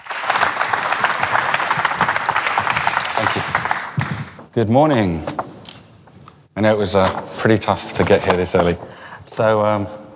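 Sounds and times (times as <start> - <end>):
audience applause: 0.0 - 4.4
speech: 4.6 - 5.4, 6.6 - 10.0.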